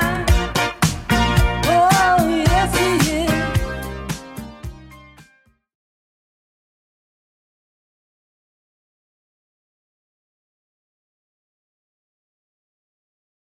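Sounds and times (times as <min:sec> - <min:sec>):
80s-style beat at 110 bpm: 0:00.0 - 0:05.3.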